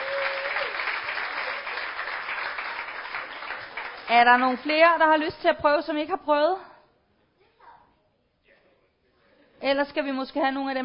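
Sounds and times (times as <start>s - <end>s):
audience clapping: 0.0s - 5.0s
speech: 4.1s - 6.7s, 9.6s - 10.8s.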